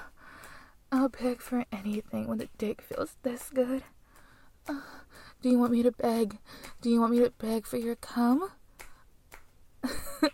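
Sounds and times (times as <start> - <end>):
slap on skin: 0.4 - 10.3
speech: 1.0 - 4.0, 4.7 - 8.6.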